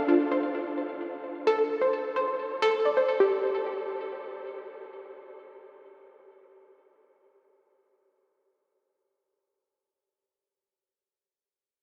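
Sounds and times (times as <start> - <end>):
ambient downtempo music: 0.0 - 6.3.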